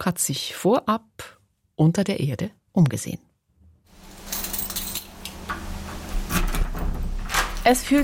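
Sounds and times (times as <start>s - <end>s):
speech: 0.0s - 3.3s, 7.6s - 8.0s
heavy airlock door being pushed open: 5.5s - 8.0s.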